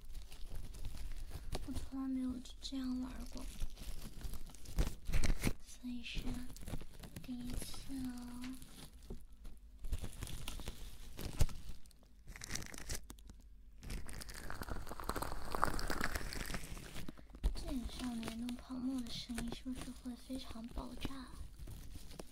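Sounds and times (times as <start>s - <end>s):
plastic cling wrap being handled, crinkling: 0.0s - 22.3s
speech: 1.9s - 3.8s, 5.8s - 8.8s, 19.7s - 21.4s.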